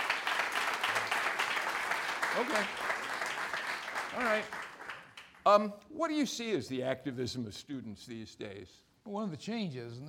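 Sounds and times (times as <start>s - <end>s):
crowd applauding: 0.0s - 5.5s
speech: 2.4s - 2.9s, 4.1s - 4.6s, 5.4s - 10.0s.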